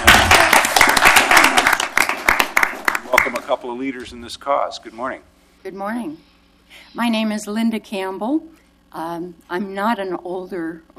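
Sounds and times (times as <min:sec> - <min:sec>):
audience applause for Older Americans Month proclamation in Portland, Oregon: 0:00.0 - 0:03.6
speech: 0:03.2 - 0:10.9.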